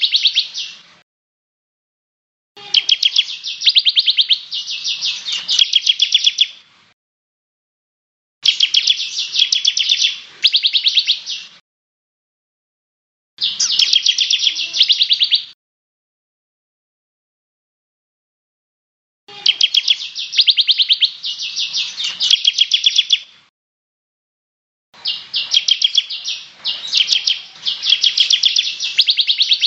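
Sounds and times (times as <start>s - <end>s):
bird song: 0.0s - 0.9s, 2.6s - 6.7s, 8.4s - 11.6s, 13.4s - 15.6s, 19.3s - 23.4s, 25.0s - 29.6s.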